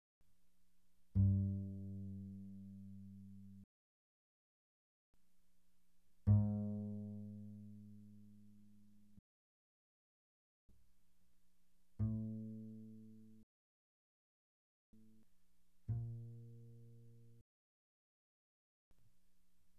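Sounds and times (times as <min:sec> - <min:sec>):
double bass pizzicato pianissimo on the G string: 0:01.1 - 0:03.6, 0:06.2 - 0:08.8, 0:15.9 - 0:17.4.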